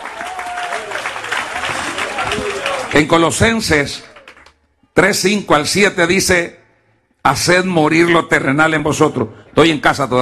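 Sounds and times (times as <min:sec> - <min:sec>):
audience applause: 0:00.0 - 0:04.6
speech: 0:02.9 - 0:04.1, 0:05.0 - 0:06.6, 0:07.2 - 0:10.1.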